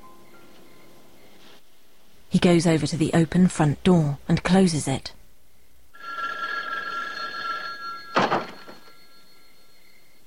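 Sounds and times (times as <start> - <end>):
speech: 2.3 - 5.2
telephone ringing: 5.9 - 10.2.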